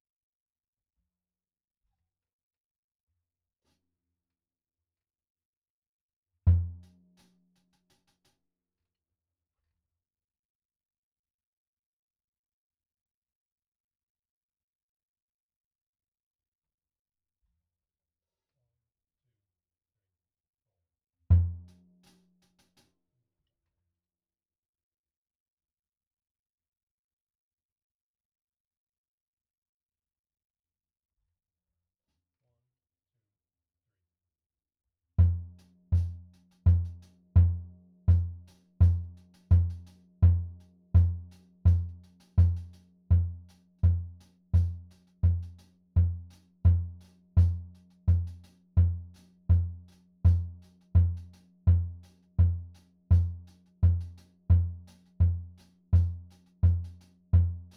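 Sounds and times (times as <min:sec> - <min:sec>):
kick drum: 0:35.2 - 0:57.7.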